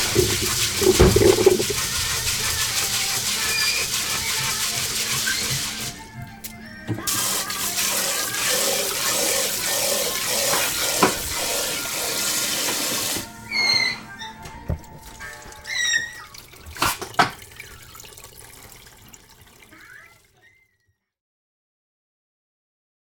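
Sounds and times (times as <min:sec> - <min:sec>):
rice being washed: 0:00.0 - 0:06.0, 0:07.0 - 0:13.3, 0:14.8 - 0:20.6.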